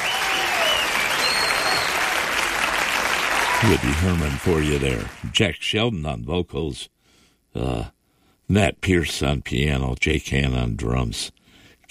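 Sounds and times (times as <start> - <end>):
faint whistles: 0.0 - 2.0
crowd applauding: 0.0 - 5.4
speech: 3.6 - 7.0, 7.6 - 11.9.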